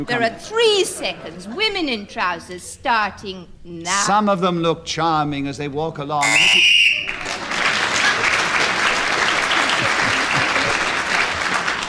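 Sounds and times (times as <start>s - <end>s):
laughter: 0.0s - 1.9s, 7.4s - 11.8s
speech: 0.0s - 6.7s
shrill whistle blast: 6.2s - 7.2s
applause: 6.7s - 11.8s.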